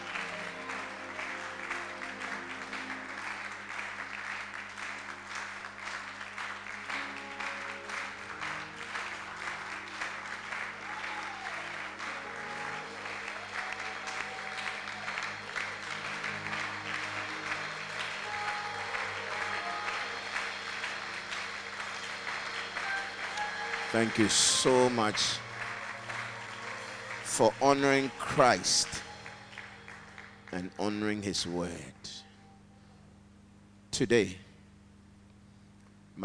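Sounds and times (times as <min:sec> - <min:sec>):
audience clapping: 0:00.0 - 0:31.8
sustained low musical drone: 0:00.0 - 0:33.3
speech: 0:24.0 - 0:25.4, 0:27.4 - 0:29.1, 0:30.5 - 0:31.9, 0:34.0 - 0:34.4.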